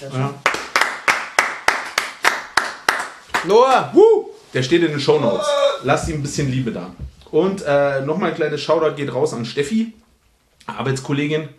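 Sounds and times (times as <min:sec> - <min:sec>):
speech: 0:00.0 - 0:00.5, 0:03.4 - 0:10.0, 0:10.6 - 0:11.5
people clapping: 0:00.3 - 0:03.9.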